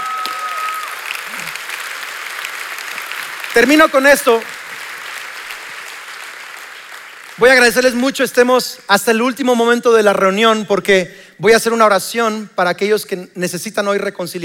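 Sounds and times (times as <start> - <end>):
audience applauding loudly: 0.0 - 8.1
speech: 3.6 - 4.6, 7.4 - 14.4.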